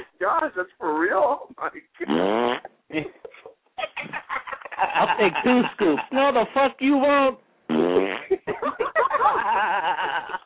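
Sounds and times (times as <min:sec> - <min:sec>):
speech: 0:00.2 - 0:03.2, 0:05.0 - 0:07.4
fart-like sound effect standing in for a stabbing: 0:02.0 - 0:02.7, 0:07.7 - 0:08.3
people laughing and chuckling: 0:03.8 - 0:06.5, 0:08.3 - 0:10.4.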